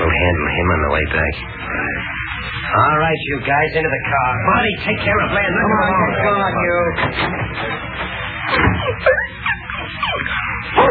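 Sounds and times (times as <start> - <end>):
speech: 0.3 - 7.8, 8.5 - 9.4
dog whimpering: 8.5 - 10.8.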